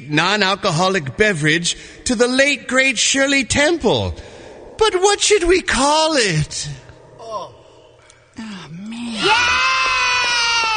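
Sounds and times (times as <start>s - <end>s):
speech: 0.1s - 6.8s, 9.2s - 9.6s
children cheering after a toast with a sweet non-alcoholic drink: 9.1s - 10.7s.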